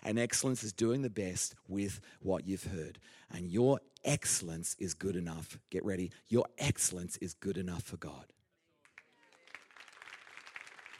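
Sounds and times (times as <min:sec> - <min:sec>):
speech: 0:00.0 - 0:08.4
audience applause: 0:08.9 - 0:10.9.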